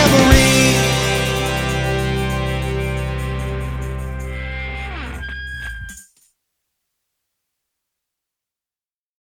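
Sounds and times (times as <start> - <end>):
golden tambourine: 0.0 - 4.9.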